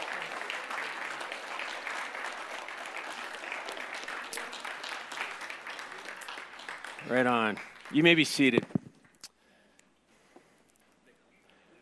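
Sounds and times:
room full of people applauding new members: 0:00.0 - 0:09.2
speech: 0:07.1 - 0:08.7.

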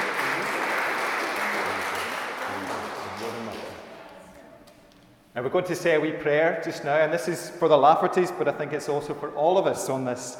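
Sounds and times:
audience applause: 0:00.0 - 0:04.1
speech: 0:05.4 - 0:10.3.

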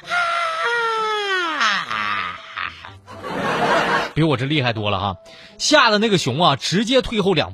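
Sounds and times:
voice imitating car owner screaming loudly: 0:00.0 - 0:02.7
laughter: 0:01.6 - 0:04.2
speech: 0:04.2 - 0:07.5.

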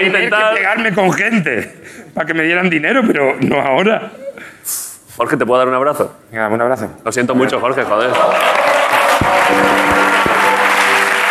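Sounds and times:
speech: 0:00.0 - 0:10.1
audience applause: 0:07.6 - 0:11.2.

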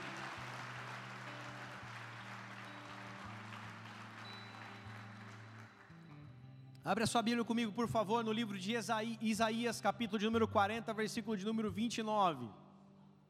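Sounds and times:
audience applauding: 0:00.0 - 0:06.3
speech: 0:06.8 - 0:12.6.

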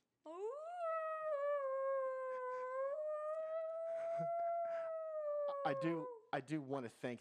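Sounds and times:
voice imitating low siren-like wail: 0:00.3 - 0:06.2
soft breathy noises: 0:01.3 - 0:06.2
speech: 0:04.2 - 0:04.4, 0:05.7 - 0:07.1.

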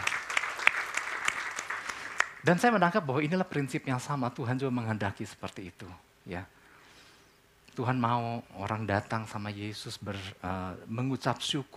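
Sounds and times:
audience applause: 0:00.0 - 0:02.4
speech: 0:02.4 - 0:06.6, 0:07.8 - 0:11.7.

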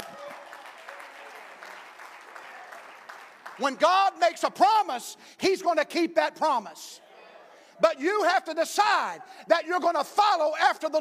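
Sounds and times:
audience applause: 0:00.0 - 0:03.8
speech: 0:03.6 - 0:07.0, 0:07.8 - 0:10.9.

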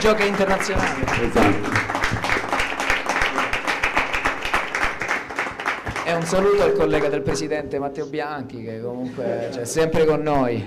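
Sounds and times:
speech: 0:00.0 - 0:02.0, 0:06.1 - 0:10.6
audience applause: 0:00.0 - 0:06.6.

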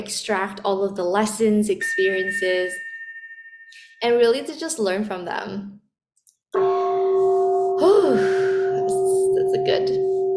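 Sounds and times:
speech: 0:00.0 - 0:02.8, 0:03.7 - 0:05.8, 0:07.8 - 0:08.5, 0:09.6 - 0:10.1
mindfulness bell ringing: 0:01.8 - 0:04.4, 0:06.6 - 0:10.3.

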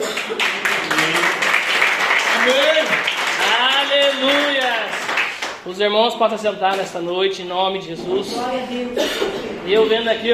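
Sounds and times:
audience applause: 0:00.0 - 0:05.6
speech: 0:05.7 - 0:10.3.

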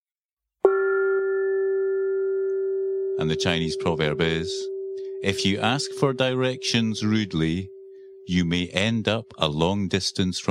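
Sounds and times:
gong being struck: 0:00.7 - 0:08.2
speech: 0:03.2 - 0:10.4.

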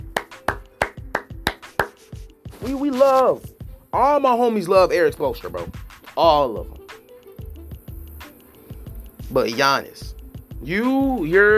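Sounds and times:
person clapping hands: 0:00.0 - 0:03.2
speech: 0:02.6 - 0:06.8, 0:09.3 - 0:11.5.

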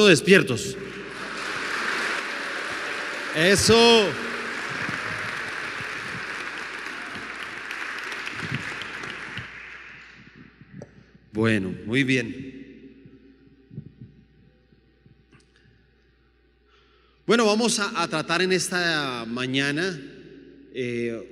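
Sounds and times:
speech: 0:00.0 - 0:01.0, 0:03.4 - 0:04.3, 0:11.4 - 0:12.6, 0:17.3 - 0:20.1, 0:20.8 - 0:21.3
audience applause: 0:00.8 - 0:10.7.

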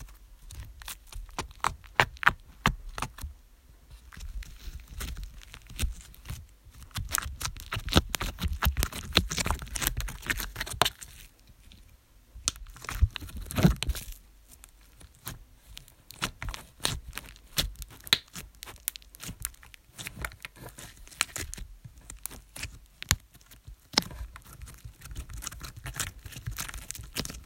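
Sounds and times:
slime squished, pressed and torn: 0:00.0 - 0:03.2, 0:04.1 - 0:11.3, 0:12.4 - 0:27.4.

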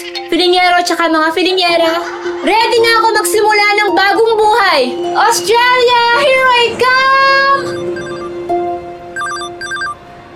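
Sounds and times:
speech: 0:00.3 - 0:07.9
phone ringing with an incoming call: 0:07.2 - 0:10.0
high warbling chirps: 0:07.5 - 0:08.4
steady electronic beeps: 0:07.5 - 0:08.4, 0:09.2 - 0:10.0.

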